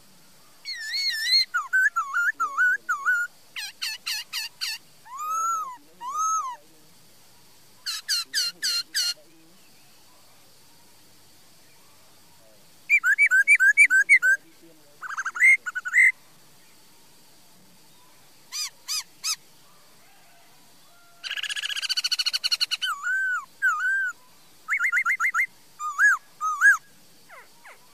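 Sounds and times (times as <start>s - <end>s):
laughingthrush whistling: 0.7s - 6.5s, 12.9s - 14.4s, 15.0s - 16.2s, 21.3s - 27.9s.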